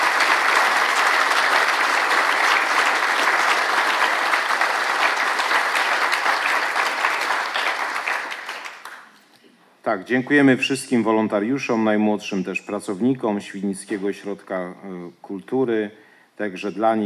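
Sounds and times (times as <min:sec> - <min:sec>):
audience applause: 0:00.0 - 0:09.1
speech: 0:09.9 - 0:17.0.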